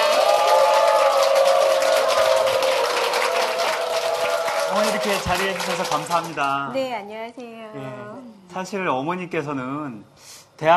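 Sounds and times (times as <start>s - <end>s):
audience applause welcoming a guest: 0.0s - 6.7s
speech: 5.0s - 10.7s.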